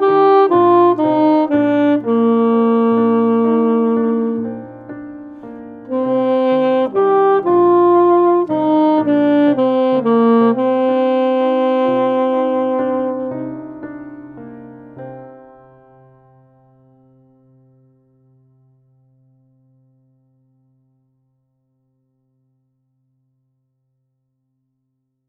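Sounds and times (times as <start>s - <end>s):
saxophone playing: 0.0s - 14.4s.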